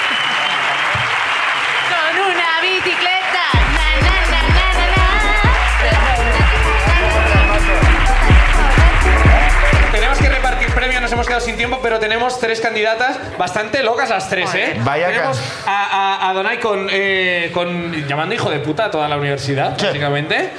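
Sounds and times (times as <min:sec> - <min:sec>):
audience applause: 0:00.0 - 0:11.6
speech: 0:10.8 - 0:20.5.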